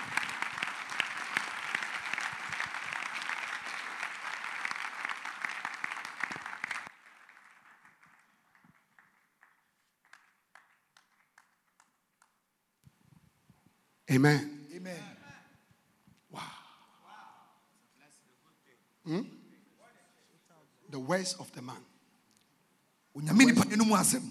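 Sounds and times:
congregation clapping hands in praise during a church service: 0:00.0 - 0:12.4
speech: 0:14.1 - 0:15.0, 0:21.2 - 0:21.9, 0:23.8 - 0:24.3.

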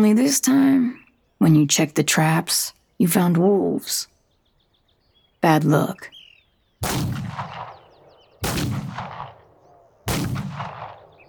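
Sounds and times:
speech: 0:00.0 - 0:04.1, 0:05.4 - 0:06.2, 0:06.8 - 0:07.5
gunshots at night: 0:06.8 - 0:11.2.

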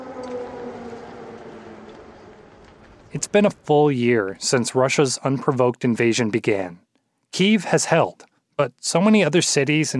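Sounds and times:
air raid sirens: 0:00.0 - 0:03.6
speech: 0:03.1 - 0:09.9.

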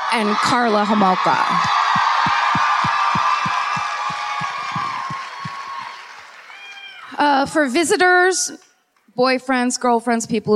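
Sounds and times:
crowd cheering and applause: 0:00.0 - 0:07.8
speech: 0:00.1 - 0:01.8, 0:07.2 - 0:10.5
rhythmic clapping or stomping: 0:01.6 - 0:05.6.

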